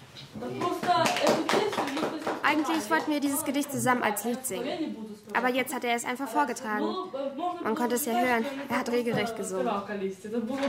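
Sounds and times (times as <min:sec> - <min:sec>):
speech: 0:00.4 - 0:01.4, 0:02.5 - 0:10.6
small group clapping: 0:00.4 - 0:03.5.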